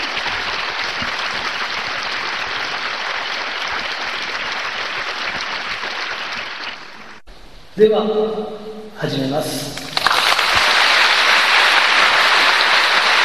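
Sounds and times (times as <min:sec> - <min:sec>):
audience applause welcoming a speaker: 0:00.0 - 0:07.2, 0:09.9 - 0:13.2
speech: 0:07.8 - 0:09.8.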